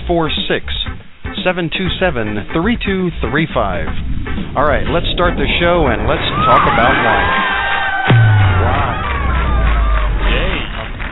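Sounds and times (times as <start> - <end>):
low hum: 0.0 - 11.1
speech: 0.1 - 7.5
live audience cheering on a lawn: 6.0 - 11.1.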